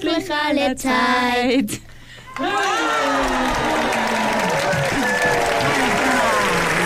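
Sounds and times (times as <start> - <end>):
speech: 0.2 - 5.6
audience applause: 2.3 - 6.8.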